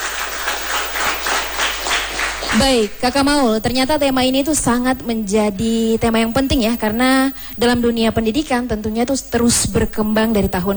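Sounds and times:
audience applause at an education talk show: 0.0 - 3.0
speech: 2.6 - 10.7.

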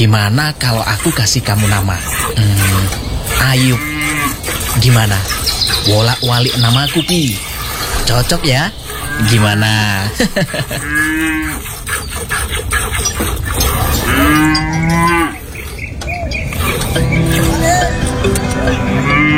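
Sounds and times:
speech: 0.0 - 15.4, 17.0 - 19.3
cows mooing in a cattle barn: 0.0 - 19.3
laughter: 9.3 - 11.1, 15.4 - 19.3.

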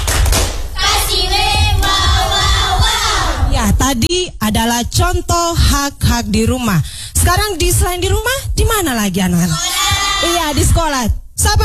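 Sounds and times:
rhythmic clapping and thumps: 0.0 - 3.2
group of children chanting in unison: 0.8 - 3.5, 9.6 - 10.2
speech: 3.9 - 11.6.

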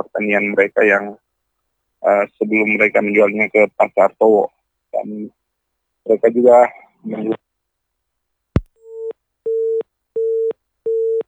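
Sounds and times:
speech: 0.2 - 1.2, 2.0 - 5.4, 6.0 - 7.4
telephone busy signal after phone line to field reporter cut off: 8.9 - 11.2.

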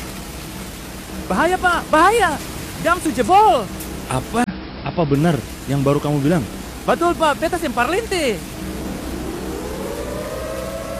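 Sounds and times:
speech: 1.2 - 4.4, 5.0 - 8.6
siren: 8.6 - 10.9.

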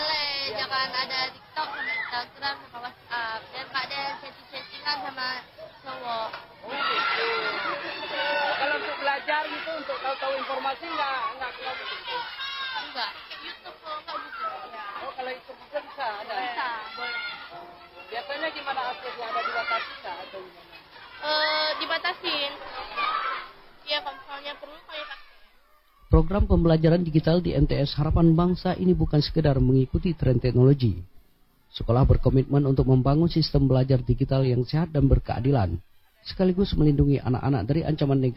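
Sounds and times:
students chatting and discussing lightly: 0.0 - 38.3
speech: 0.7 - 14.5, 18.3 - 25.3, 26.1 - 31.1, 31.7 - 38.3.

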